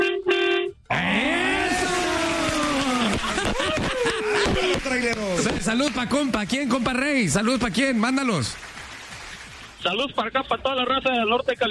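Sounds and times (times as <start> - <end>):
voice imitating truck horn: 0.0 - 1.4
laughter: 1.7 - 6.0
speech: 5.0 - 8.7, 9.8 - 11.7.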